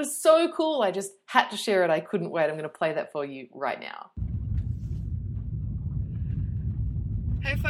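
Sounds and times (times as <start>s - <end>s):
speech: 0.0s - 4.3s, 7.4s - 7.6s
car interior road and engine drone while driving slowly away from a yoga ashram: 4.2s - 7.6s.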